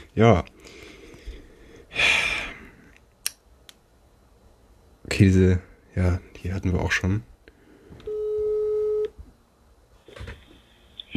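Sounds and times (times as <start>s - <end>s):
speech: 0.2s - 0.5s, 5.2s - 7.3s
telephone busy signal: 8.1s - 9.1s.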